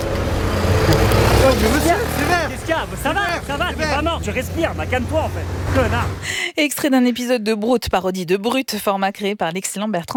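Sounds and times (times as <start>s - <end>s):
cars passing through a red light in street traffic: 0.0s - 6.5s
speech: 2.8s - 10.1s.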